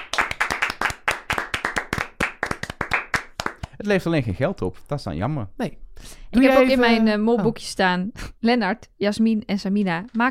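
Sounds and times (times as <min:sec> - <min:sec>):
applause: 0:00.0 - 0:03.8
speech: 0:03.8 - 0:10.2.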